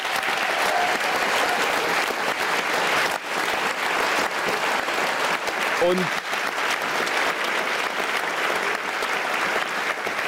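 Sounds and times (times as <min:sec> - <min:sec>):
audience applause: 0:00.0 - 0:10.2
speech: 0:05.8 - 0:06.2.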